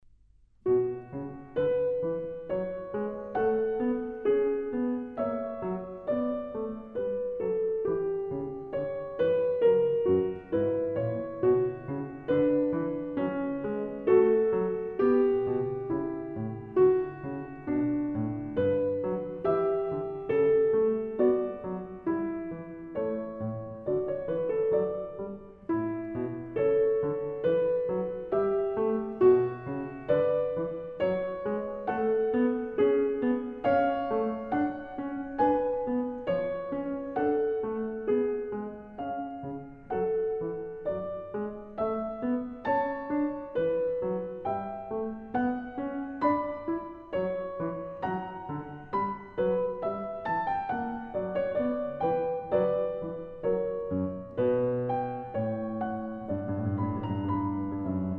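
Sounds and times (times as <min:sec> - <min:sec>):
prelude and fugue in B minor: 0:00.6 - 0:58.1.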